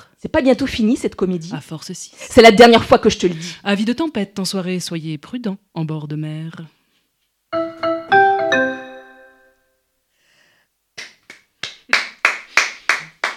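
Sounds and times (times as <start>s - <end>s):
speech: 0.2s - 6.8s
chiming melody: 7.6s - 9.6s
handclaps: 11.0s - 13.3s.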